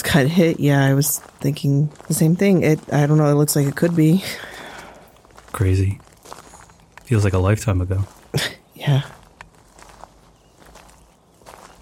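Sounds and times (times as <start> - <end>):
footsteps of people walking on a hiking trail: 0.0 - 11.8
speech: 0.1 - 4.5, 5.5 - 6.1, 7.1 - 9.2.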